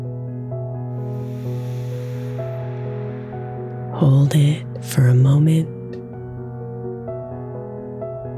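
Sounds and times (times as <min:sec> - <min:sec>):
soft sustained music tones: 0:00.0 - 0:08.3
slow deep inhalation during a guided meditation: 0:01.0 - 0:03.8
speech: 0:04.0 - 0:05.8.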